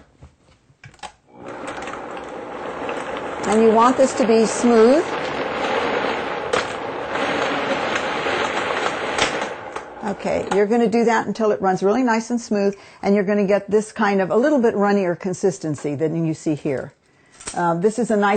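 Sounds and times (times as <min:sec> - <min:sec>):
kitchen blender running: 0:01.3 - 0:10.7
speech: 0:03.5 - 0:05.2, 0:10.1 - 0:18.3.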